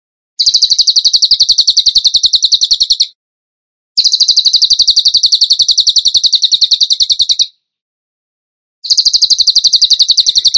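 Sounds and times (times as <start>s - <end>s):
bird song trill: 0.4s - 3.2s, 4.0s - 7.6s, 8.8s - 10.5s.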